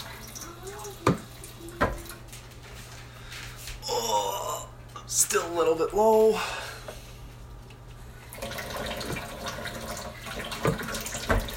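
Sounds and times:
water trickling from a tap: 0:00.0 - 0:02.4, 0:08.2 - 0:11.5
speech: 0:05.2 - 0:06.6.

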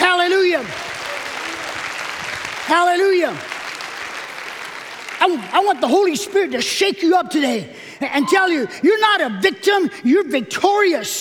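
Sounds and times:
audience clapping: 0:00.0 - 0:06.5
speech: 0:02.7 - 0:03.5, 0:05.2 - 0:11.2.

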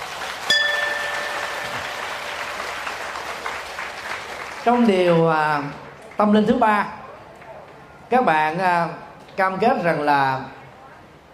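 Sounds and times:
crowd applauding: 0:00.0 - 0:06.3
bright ringing note: 0:00.5 - 0:03.2
speech: 0:04.7 - 0:07.0, 0:08.1 - 0:10.6.

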